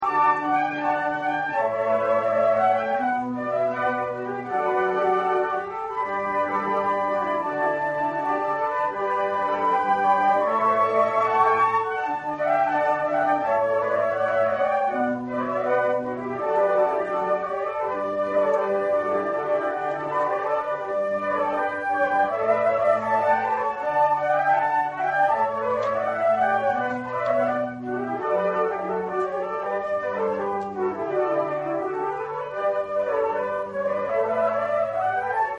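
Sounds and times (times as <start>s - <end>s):
flute in concert: 0.0s - 35.5s.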